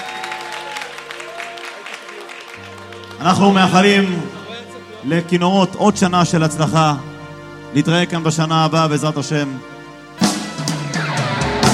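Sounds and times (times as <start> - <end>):
audience applause: 0.0 - 4.6
sustained musical tone: 0.0 - 11.7
speech: 3.2 - 4.4, 5.0 - 7.1, 7.7 - 9.7.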